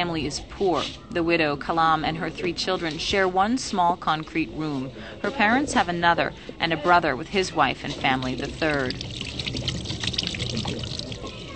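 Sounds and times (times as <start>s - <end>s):
speech: 0.0s - 9.6s
running water at an outdoor family sink: 7.6s - 11.5s.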